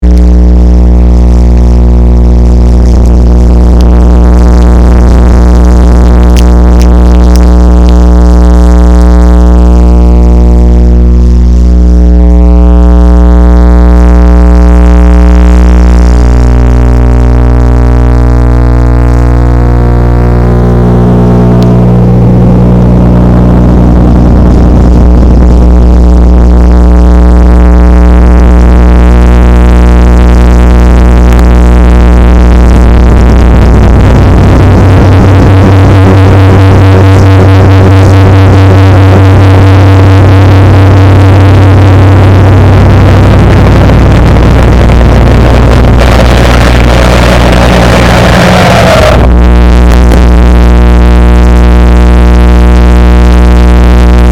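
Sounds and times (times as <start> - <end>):
noise music: 0.0 - 54.3.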